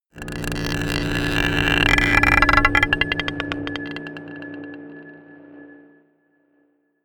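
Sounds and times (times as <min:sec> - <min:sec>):
scraping a marble pot: 0:00.2 - 0:04.8
dark drones: 0:00.2 - 0:06.1.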